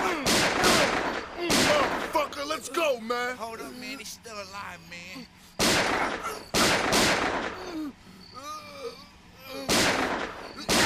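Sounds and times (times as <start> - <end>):
gunshots: 0.0 - 2.3, 5.6 - 7.8, 9.6 - 10.8
speech: 2.6 - 8.0.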